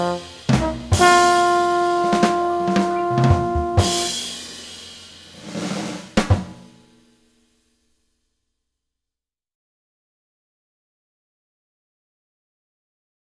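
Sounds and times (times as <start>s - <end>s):
shuffle rhythm music in F: 0.0s - 4.2s.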